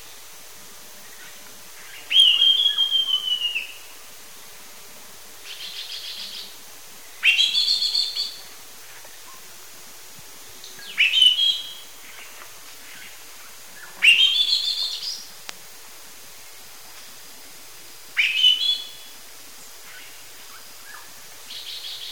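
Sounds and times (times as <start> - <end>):
Lawrence's thrush whistling and trilling: 2.1 - 3.8, 7.2 - 8.4, 10.9 - 11.8, 14.0 - 15.2.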